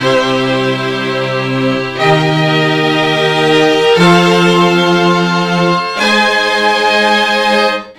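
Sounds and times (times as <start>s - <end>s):
disco string chords: 0.0s - 7.9s.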